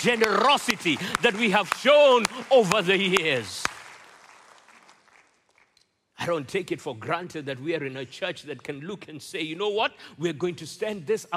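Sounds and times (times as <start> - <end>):
speech: 0.0 - 3.8, 6.2 - 11.3
crowd clapping: 0.0 - 5.8.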